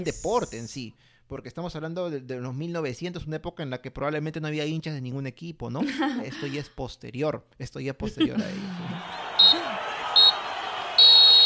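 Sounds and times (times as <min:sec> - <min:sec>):
speech: 0:00.0 - 0:09.2
laughter: 0:08.0 - 0:11.0
low murmur of crowd noise: 0:08.4 - 0:11.0
referee's final whistle blasts: 0:09.1 - 0:11.4.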